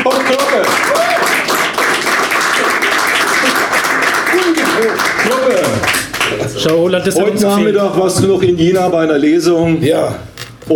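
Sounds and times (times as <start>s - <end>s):
audience applause: 0.0s - 6.8s
speech: 6.6s - 10.7s.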